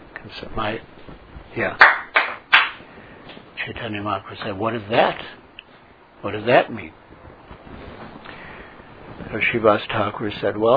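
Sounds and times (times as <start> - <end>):
speech: 0.3 - 2.0, 3.6 - 5.4, 6.2 - 7.1, 9.3 - 10.7
loud hand claps: 1.8 - 2.9.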